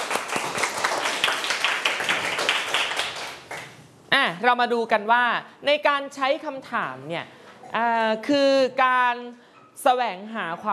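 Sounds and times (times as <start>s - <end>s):
children clapping: 0.0s - 3.8s
speech: 4.4s - 10.7s.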